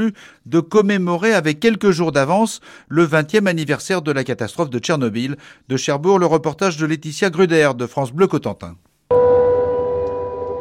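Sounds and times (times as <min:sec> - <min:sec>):
speech: 0:00.0 - 0:08.9
siren sounding at a protest in Cherbourg: 0:09.1 - 0:10.5.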